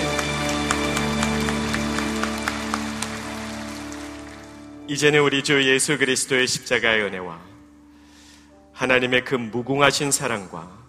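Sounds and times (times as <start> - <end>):
audience applause: 0.0 - 4.9
speech: 4.9 - 7.5, 8.8 - 10.8.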